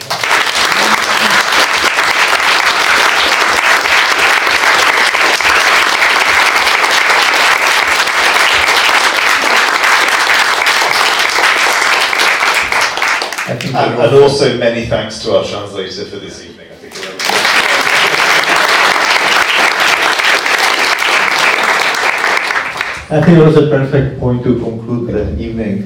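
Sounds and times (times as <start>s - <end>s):
crowd applauding: 0.0s - 14.1s, 16.9s - 23.2s
speech: 14.0s - 16.6s, 23.1s - 25.8s.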